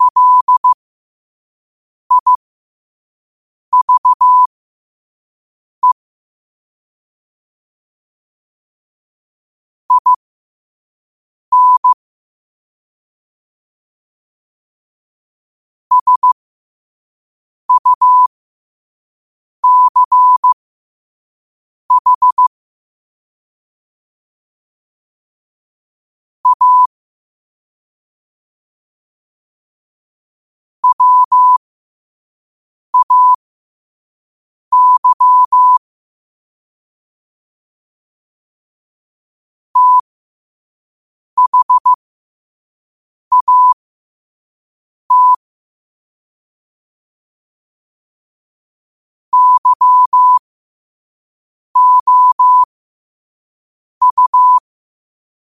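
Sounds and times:
morse code at 5 wpm: 0.0s - 0.8s, 2.1s - 2.4s, 3.8s - 4.5s, 9.9s - 10.2s, 11.5s - 12.0s, 15.9s - 16.4s, 17.7s - 18.3s, 19.6s - 20.6s, 21.9s - 22.5s, 26.4s - 26.9s, 30.8s - 31.6s, 33.0s - 33.4s, 34.7s - 35.8s, 39.8s - 40.0s, 41.4s - 42.0s, 43.3s - 43.8s, 45.1s - 45.4s, 49.3s - 50.4s, 51.8s - 52.7s, 54.0s - 54.6s.

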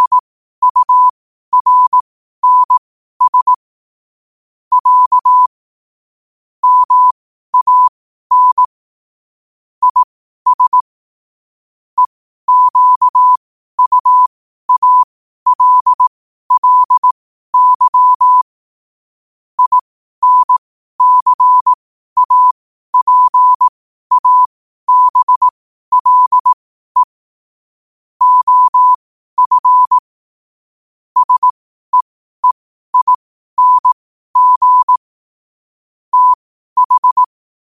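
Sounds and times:
morse code at 5 wpm: 0.0s - 3.6s, 4.7s - 5.5s, 6.6s - 8.7s, 9.8s - 10.8s, 12.0s - 18.5s, 19.6s - 27.2s, 28.2s - 30.1s, 31.2s - 35.1s, 36.1s - 37.6s.

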